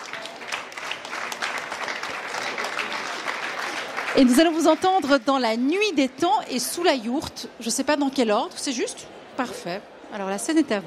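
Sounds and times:
crowd applauding: 0.0s - 5.3s
speech: 4.2s - 10.8s.

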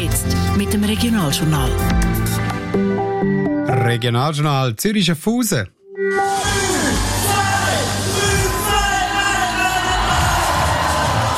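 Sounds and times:
speech: 0.6s - 2.9s, 3.8s - 6.3s
fans shouting and whooping: 6.3s - 11.3s
large crowd of fans cheering and applauding: 6.3s - 11.3s.

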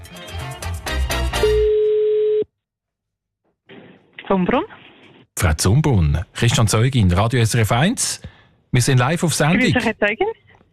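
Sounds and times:
ringing tone on an outgoing phone call: 1.4s - 2.5s
speech: 4.3s - 4.8s, 5.4s - 10.4s.

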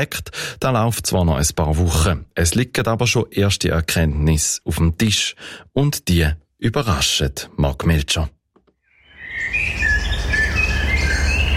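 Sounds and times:
speech: 0.0s - 8.4s
blackbird, chaffinch and carrion crow song: 8.8s - 11.5s.

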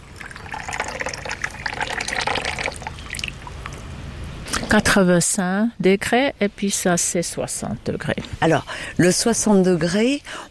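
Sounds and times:
water poured to prepare matcha tea: 0.0s - 3.8s
speech: 4.7s - 10.4s.

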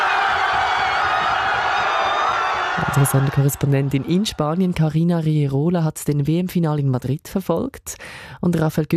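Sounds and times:
crowd cheering in Spain after the World Cup final whistle: 0.0s - 4.9s
speech: 2.9s - 8.9s.

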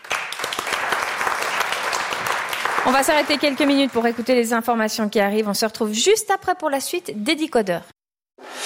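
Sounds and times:
audience applause: 0.0s - 4.5s
speech: 2.8s - 8.0s.

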